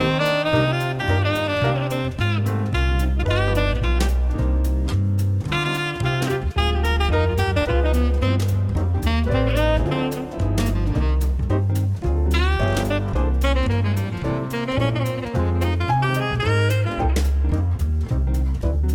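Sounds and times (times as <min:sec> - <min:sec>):
music for reading: 0:00.0 - 0:18.9.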